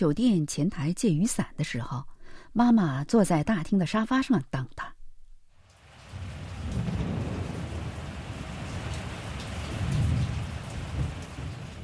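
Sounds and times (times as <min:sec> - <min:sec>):
speech: 0:00.0 - 0:05.0
heavy rain: 0:05.6 - 0:11.8
thunder rumbling: 0:05.9 - 0:11.8.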